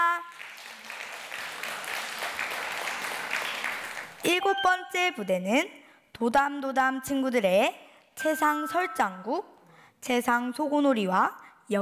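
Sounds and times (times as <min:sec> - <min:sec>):
audience applauding: 0:00.0 - 0:04.4
speech: 0:04.2 - 0:11.7.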